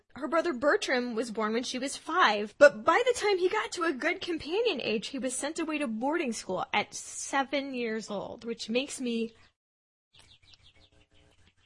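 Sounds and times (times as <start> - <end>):
speech: 0.2 - 9.5
birds chirping: 9.2 - 11.6.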